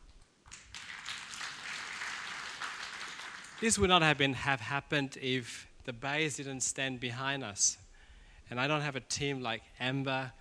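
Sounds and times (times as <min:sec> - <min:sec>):
audience clapping: 0:00.4 - 0:04.2
speech: 0:03.6 - 0:07.8, 0:08.5 - 0:10.3.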